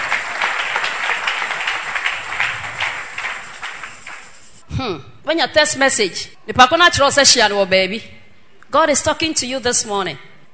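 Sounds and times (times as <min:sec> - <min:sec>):
crowd clapping: 0:00.0 - 0:04.6
speech: 0:04.8 - 0:10.5.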